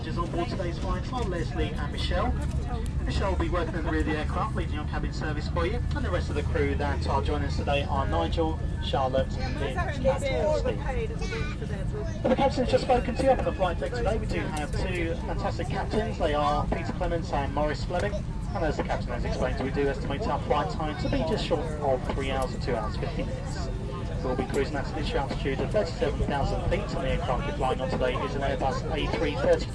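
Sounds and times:
plane: 0:00.0 - 0:29.7.

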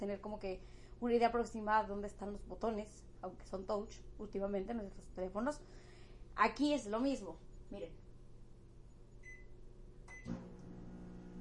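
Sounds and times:
speech: 0:00.0 - 0:08.0
microwave oven beeps: 0:09.2 - 0:11.3
microwave oven click: 0:10.1 - 0:11.3.

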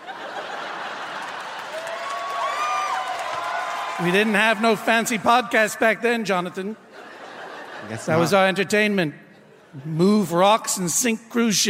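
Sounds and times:
laughter: 0:00.0 - 0:02.0, 0:06.6 - 0:08.7
large crowd applause: 0:00.0 - 0:05.4
speech: 0:04.0 - 0:06.8, 0:07.8 - 0:11.6.

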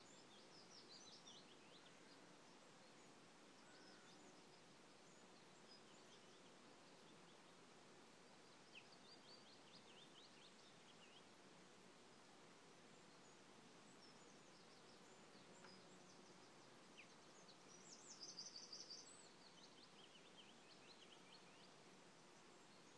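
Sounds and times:
morning birdsong in Kerry: 0:00.0 - 0:22.9.

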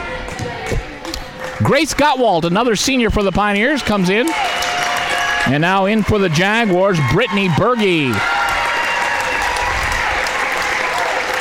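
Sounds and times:
crowd applause for starters and seniors: 0:01.0 - 0:11.3
speech: 0:01.6 - 0:04.8, 0:05.4 - 0:08.3.

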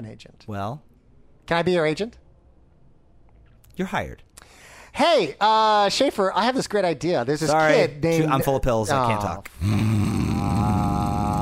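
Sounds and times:
speech: 0:00.0 - 0:00.9, 0:01.5 - 0:02.2, 0:03.8 - 0:10.0
person imitating snoring: 0:09.5 - 0:11.4.

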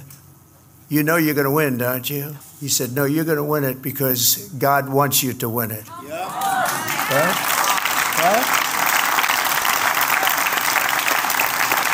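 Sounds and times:
speech: 0:00.9 - 0:06.4, 0:07.1 - 0:07.5
religious audience applause at the Museum of the Bible: 0:06.1 - 0:11.9.

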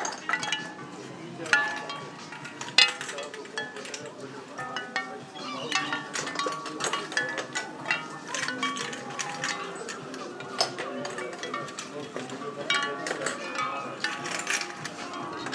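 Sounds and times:
shell wind chime: 0:00.2 - 0:15.5.

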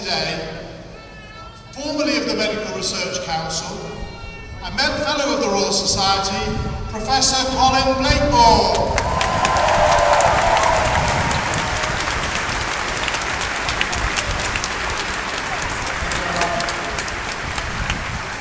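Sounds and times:
speech: 0:00.1 - 0:00.7, 0:01.8 - 0:09.1
audience applause: 0:08.7 - 0:18.3.

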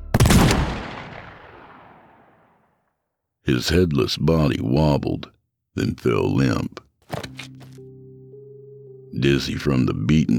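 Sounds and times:
gunshot with ringing tail: 0:00.0 - 0:02.6
speech: 0:03.5 - 0:07.5, 0:09.2 - 0:10.3.

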